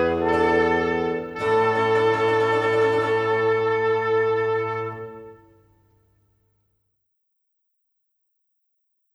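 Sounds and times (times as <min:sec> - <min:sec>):
quartet playing in A: 0:00.0 - 0:05.6.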